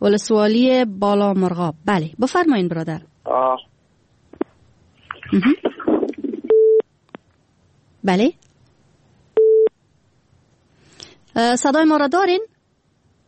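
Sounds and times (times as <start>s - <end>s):
speech: 0.0s - 3.7s, 5.3s - 5.7s, 8.0s - 8.4s, 11.4s - 12.5s
distorted phone line noise: 4.3s - 6.8s
busy tone after dropped phone call: 6.4s - 6.8s, 9.4s - 9.7s.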